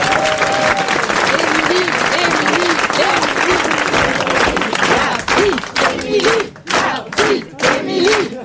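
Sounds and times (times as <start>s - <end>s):
audience cheers and whoops: 0.0s - 1.2s
audience applause: 0.0s - 8.4s.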